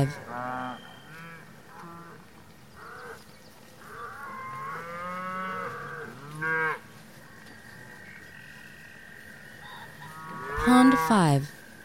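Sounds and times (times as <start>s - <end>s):
speech: 0.0s - 0.3s, 11.0s - 11.6s
cattle mooing: 0.0s - 2.2s, 3.8s - 6.8s, 10.0s - 11.3s.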